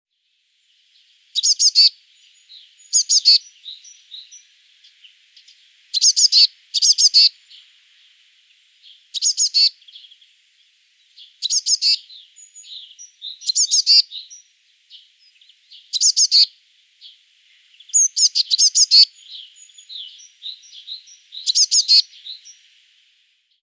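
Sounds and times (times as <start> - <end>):
Eurasian blue tit calling: 1.4 - 7.7, 8.9 - 10.2, 11.2 - 17.2, 17.8 - 22.6.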